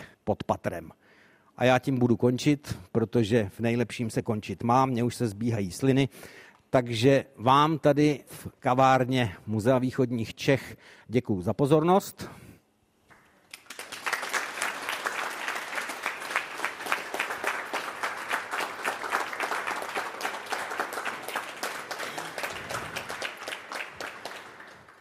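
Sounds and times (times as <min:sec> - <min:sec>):
speech: 0:00.3 - 0:01.0, 0:01.6 - 0:12.4
audience applauding: 0:13.1 - 0:24.9.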